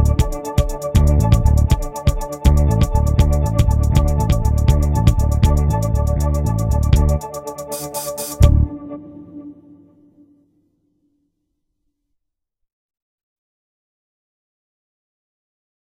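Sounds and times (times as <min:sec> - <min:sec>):
upbeat music: 0:00.0 - 0:10.0.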